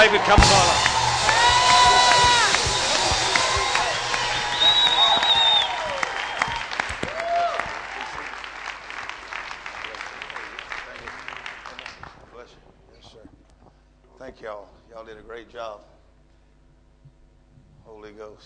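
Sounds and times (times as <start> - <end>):
audience shouts and whistle-like cries: 0.0 - 7.6
Hawke's Bay audience clapping to welcome guests: 0.0 - 13.2
speech: 0.1 - 0.9, 18.1 - 18.4.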